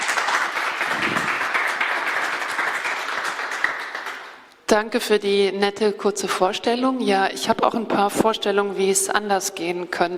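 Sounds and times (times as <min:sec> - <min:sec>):
applause: 0:00.0 - 0:04.5
speech: 0:04.7 - 0:10.1.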